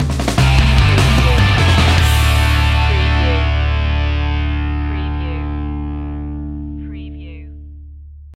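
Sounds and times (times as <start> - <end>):
music sting: 0.4 - 6.9.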